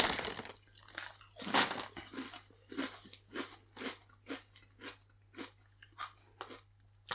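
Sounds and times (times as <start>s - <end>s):
crunchy spicy crisps being chewed: 0.0s - 5.5s.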